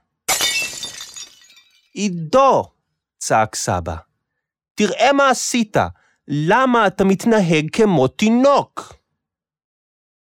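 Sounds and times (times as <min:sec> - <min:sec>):
dinner plate falling and shattering: 0:00.3 - 0:01.9
speech: 0:02.0 - 0:04.1, 0:04.8 - 0:09.0.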